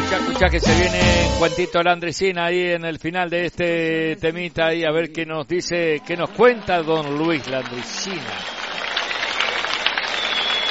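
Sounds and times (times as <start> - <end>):
speech: 0.2 - 8.6
applause: 6.0 - 10.6.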